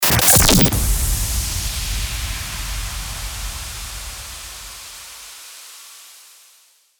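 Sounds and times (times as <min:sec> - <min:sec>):
starter whoosh: 0:00.0 - 0:05.2.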